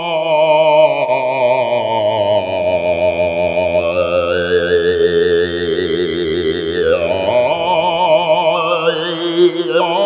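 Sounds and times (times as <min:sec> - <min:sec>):
robotic tenor voice continuum: 0:00.1 - 0:10.0.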